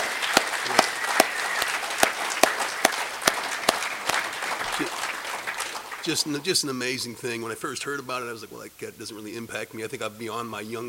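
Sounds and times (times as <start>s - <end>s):
audience applause: 0.0s - 6.9s
speech: 6.0s - 10.8s.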